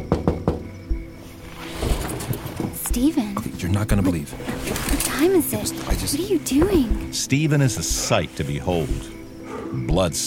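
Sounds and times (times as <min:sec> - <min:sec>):
knocks on a window on a quiet rural Kansas night: 0:00.0 - 0:01.0
dull thumps: 0:00.0 - 0:07.2
speech: 0:03.0 - 0:10.2.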